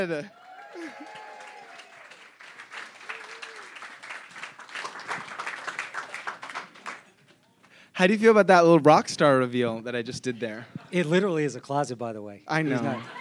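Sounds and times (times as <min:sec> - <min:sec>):
speech: 0:00.0 - 0:01.2, 0:08.0 - 0:13.1
voices and cheers: 0:00.0 - 0:02.4, 0:03.0 - 0:03.9
crowd applauding: 0:00.0 - 0:07.8
laughter: 0:12.6 - 0:13.1.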